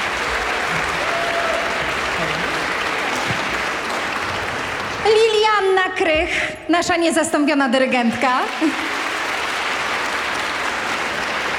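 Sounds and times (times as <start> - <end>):
audience applause: 0.0 - 5.8, 8.2 - 11.5
speech: 5.0 - 9.0.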